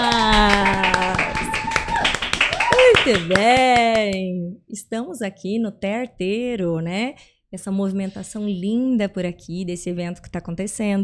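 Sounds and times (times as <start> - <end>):
audience applause: 0.0 - 3.9
speech: 3.1 - 11.0.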